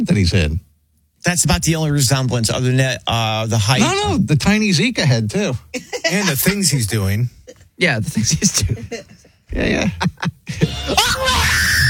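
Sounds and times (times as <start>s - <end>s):
speech: 0.0s - 0.6s, 1.2s - 11.3s
man screaming: 3.8s - 4.3s, 10.6s - 11.8s
laughter: 8.1s - 11.8s.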